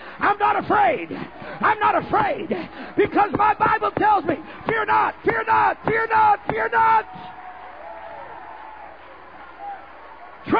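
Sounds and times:
speech: 0.4s - 7.3s
audience applause: 4.3s - 10.5s.

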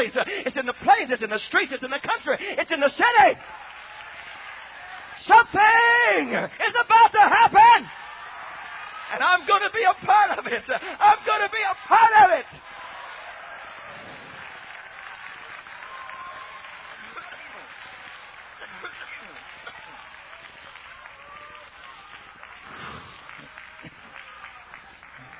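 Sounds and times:
speech: 0.0s - 3.6s, 5.2s - 8.1s, 9.1s - 12.8s
audience clapping: 0.0s - 25.3s.

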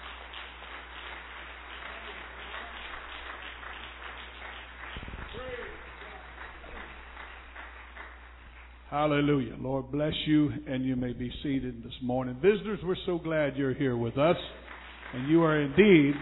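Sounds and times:
audience clapping hands: 0.0s - 9.3s, 13.8s - 16.2s
speech: 8.9s - 16.2s.

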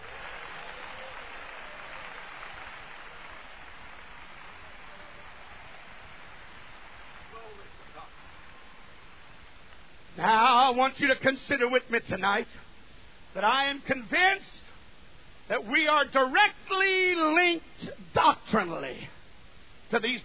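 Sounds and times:
audience clapping hands in praise: 0.0s - 9.8s
speech: 10.2s - 12.7s, 13.3s - 14.7s, 15.5s - 19.2s, 19.9s - 20.2s.

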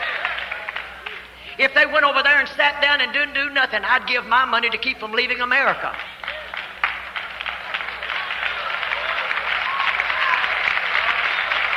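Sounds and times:
audience clapping: 0.0s - 1.6s, 5.8s - 11.7s
speech: 1.6s - 6.2s.

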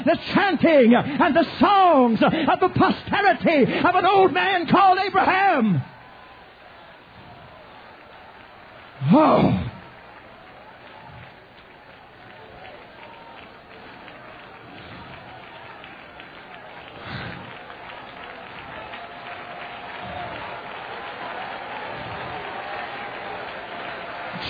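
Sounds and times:
speech: 0.0s - 6.0s, 9.0s - 9.7s
audience clapping and shouting: 0.7s - 24.4s.

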